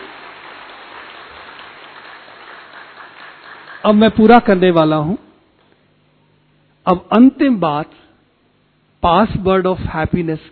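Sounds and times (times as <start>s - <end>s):
audience applause: 0.0s - 4.3s
speech: 3.8s - 5.2s, 6.8s - 8.0s, 9.0s - 10.5s.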